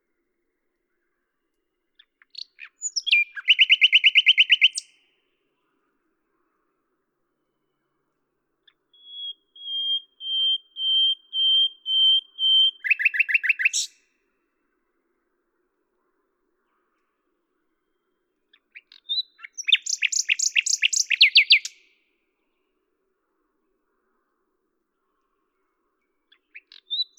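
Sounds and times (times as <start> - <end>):
common nightingale singing: 2.0 - 5.0, 8.6 - 14.0, 17.8 - 21.8, 26.3 - 27.1.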